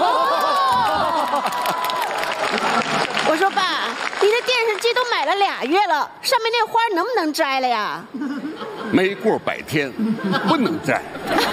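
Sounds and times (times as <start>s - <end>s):
laughter: 0.0s - 3.3s, 8.1s - 11.5s
crowd cheering and shouting: 0.0s - 3.8s
audience clapping: 0.3s - 5.1s
speech: 3.6s - 11.5s.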